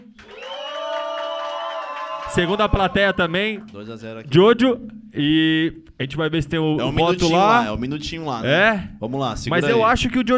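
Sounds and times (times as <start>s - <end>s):
high-pitched screams and whoops: 0.2s - 3.4s
audience cheering and shouting: 0.2s - 3.7s
speech: 2.3s - 10.3s.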